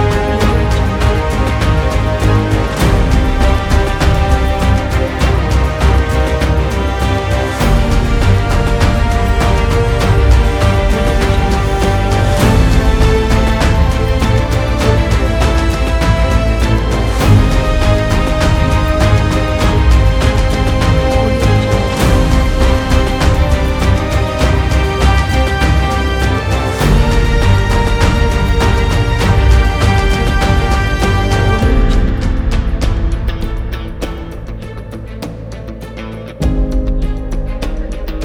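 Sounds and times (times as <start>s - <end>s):
emotional powerful motivational cinematic music: 0.0s - 38.2s.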